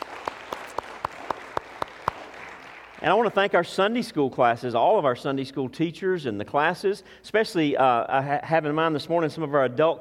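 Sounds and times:
audience applauding: 0.0 - 3.4
speech: 3.0 - 9.9.

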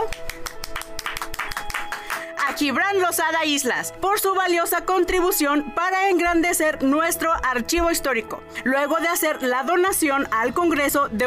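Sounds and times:
audience applause: 0.1 - 2.3
speech: 2.6 - 11.2.

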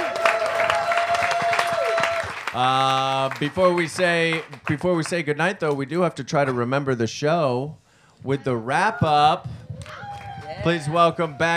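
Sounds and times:
crowd applauding: 0.0 - 5.2, 9.1 - 11.5
speech: 2.6 - 10.0, 10.6 - 11.5.

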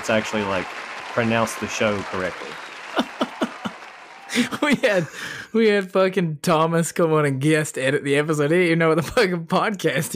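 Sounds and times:
speech: 0.0 - 3.1, 4.3 - 10.1
round of applause sound effect: 0.0 - 5.2
laughter: 0.0 - 5.5.

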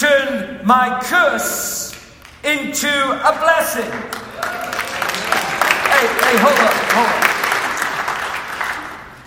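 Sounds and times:
speech: 0.6 - 1.8, 2.4 - 4.8, 6.0 - 7.3
crowd applauding: 3.8 - 9.2.

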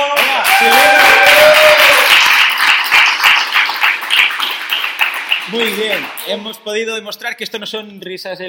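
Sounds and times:
cheering voices: 0.0 - 2.2
live audience applause: 0.0 - 6.4
speech: 5.5 - 8.4.

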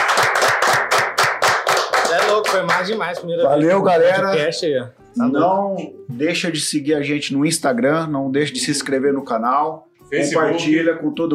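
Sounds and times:
round of applause: 0.0 - 3.3
speech: 2.2 - 11.3.

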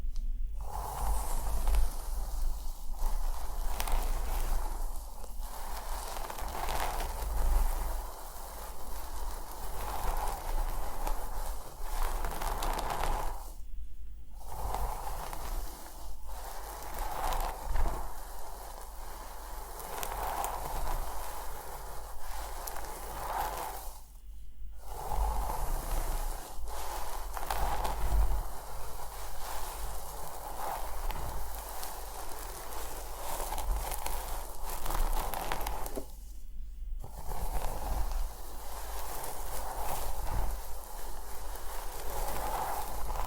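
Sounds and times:
scalp massage and hair brushing scratching: 0.6 - 43.2.

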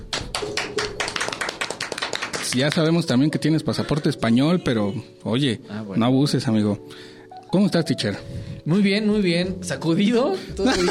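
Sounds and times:
hand clapping: 0.0 - 3.1
speech: 2.5 - 10.8.

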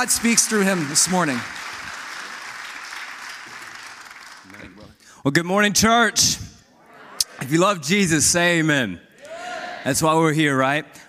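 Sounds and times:
speech: 0.0 - 1.7, 5.2 - 6.5, 7.4 - 9.0, 9.8 - 11.0
church audience applause welcoming a speaker: 0.0 - 4.8.

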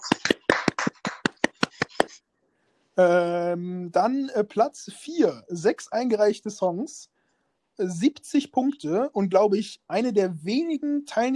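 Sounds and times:
crowd small applause: 0.0 - 2.2
speech: 3.0 - 7.1, 7.8 - 11.3.

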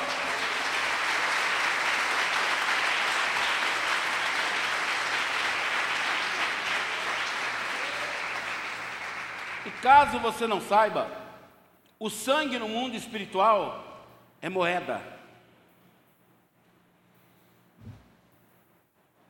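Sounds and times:
audience applauding: 0.0 - 10.4
speech: 9.8 - 11.2, 12.0 - 15.2.

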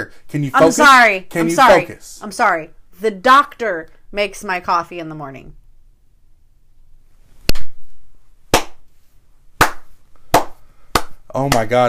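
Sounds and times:
speech: 0.1 - 5.6, 11.3 - 11.8
hand clapping: 8.5 - 8.8, 9.6 - 11.8.

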